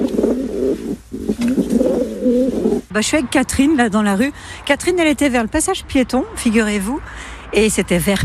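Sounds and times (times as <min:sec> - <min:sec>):
pigeons cooing in the street: 0:00.0 - 0:02.9
speech: 0:03.0 - 0:08.2.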